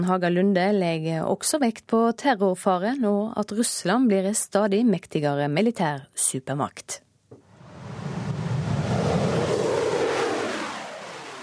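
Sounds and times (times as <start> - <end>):
speech: 0.0 - 7.0
MiG-35 fighter jet engine roaring: 7.6 - 11.4.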